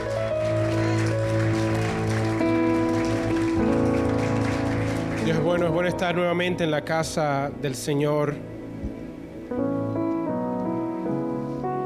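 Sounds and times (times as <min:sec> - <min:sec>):
audience applause: 0:00.0 - 0:06.0
sustained keyboard chords: 0:00.0 - 0:11.8
speech: 0:05.5 - 0:08.5.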